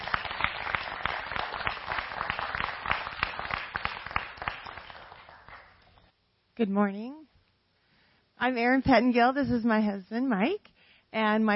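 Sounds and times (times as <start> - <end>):
audience clapping to welcome guests onto the stage at a morning gathering: 0.0 - 5.9
speech: 6.6 - 7.2, 8.4 - 11.5.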